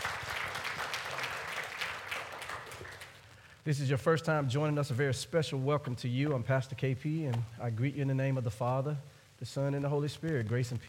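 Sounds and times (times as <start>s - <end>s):
audience hand clapping: 0.0s - 3.4s
speech: 3.6s - 10.8s.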